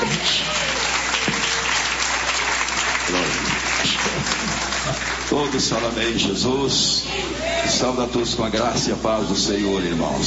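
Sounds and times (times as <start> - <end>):
audience clapping: 0.0 - 6.2
speech: 5.4 - 10.2.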